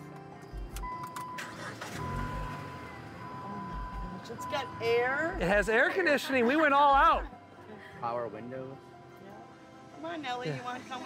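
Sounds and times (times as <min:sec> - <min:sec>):
car engine starting and idling: 0:00.7 - 0:05.8
speech: 0:04.3 - 0:07.4, 0:08.0 - 0:08.9, 0:10.0 - 0:11.0.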